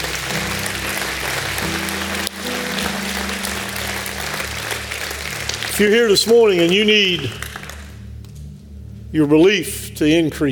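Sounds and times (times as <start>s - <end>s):
audience hand clapping: 0.0s - 8.3s
speech: 5.8s - 7.4s, 9.1s - 10.4s.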